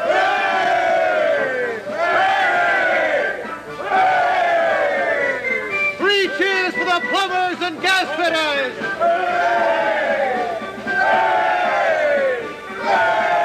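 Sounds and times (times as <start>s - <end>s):
parade crowd cheering: 0.0s - 6.5s, 7.7s - 13.4s.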